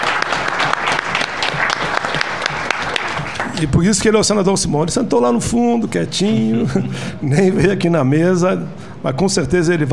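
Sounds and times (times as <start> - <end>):
audience applause: 0.0 - 3.7
speech: 3.6 - 9.9.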